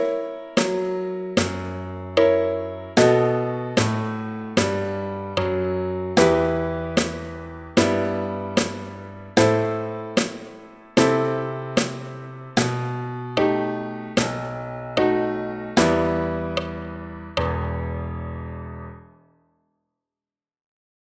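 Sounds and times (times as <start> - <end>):
piano: 0.0 - 19.6
snare drum: 0.6 - 1.8, 3.8 - 5.0, 7.0 - 12.9.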